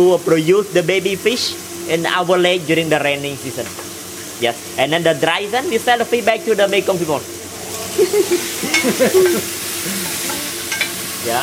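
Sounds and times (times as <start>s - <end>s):
speech: 0.0s - 7.4s, 8.0s - 10.0s
ginger sizzling in a hot pan: 0.0s - 11.4s
laughter: 7.7s - 10.2s
stirring scrapes and utensil clinks: 10.2s - 11.0s.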